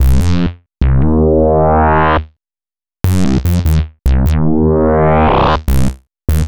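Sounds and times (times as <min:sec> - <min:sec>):
synth bass: 0:00.0 - 0:02.2, 0:03.0 - 0:06.4.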